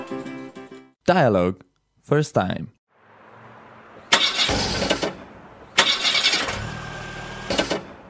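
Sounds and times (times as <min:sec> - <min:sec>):
speech: 0:01.1 - 0:02.8
old car starter cranking but failing to start: 0:04.0 - 0:08.0.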